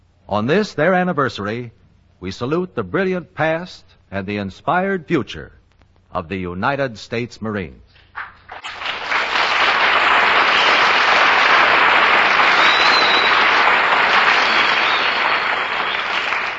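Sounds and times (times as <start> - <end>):
speech: 0.3 - 8.3
applause from a large audience: 8.2 - 16.5.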